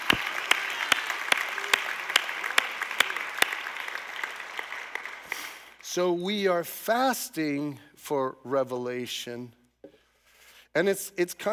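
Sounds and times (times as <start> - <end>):
audience clapping: 0.0 - 5.8
speech: 6.0 - 9.6, 10.8 - 11.5.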